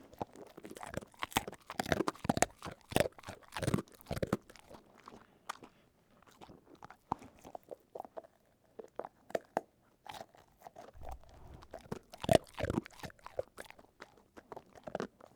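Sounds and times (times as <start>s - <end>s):
dog chewing and crunching: 0.0s - 15.3s.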